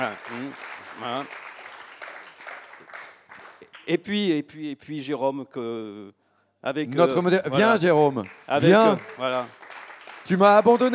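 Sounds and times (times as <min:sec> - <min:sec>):
speech: 0:00.0 - 0:01.4, 0:03.9 - 0:09.6, 0:10.3 - 0:10.9
audience applause: 0:00.0 - 0:03.8, 0:07.0 - 0:10.9.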